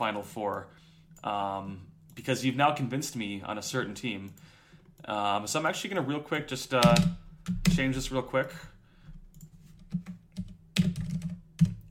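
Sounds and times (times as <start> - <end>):
speech: 0.0 - 8.7
typing on a computer keyboard: 9.3 - 11.8.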